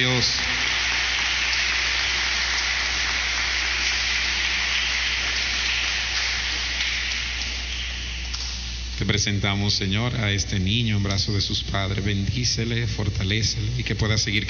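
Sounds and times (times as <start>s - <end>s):
speech: 0.0s - 0.6s, 9.1s - 14.4s
audience applause: 0.0s - 8.6s.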